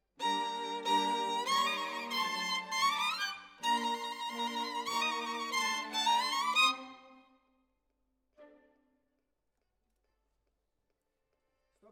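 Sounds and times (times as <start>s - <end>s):
violin solo: 0.2s - 7.3s.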